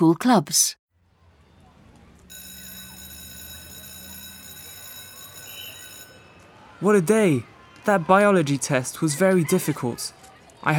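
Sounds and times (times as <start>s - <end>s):
speech: 0.0s - 0.8s, 6.8s - 10.7s
school bell ringing: 2.3s - 7.2s.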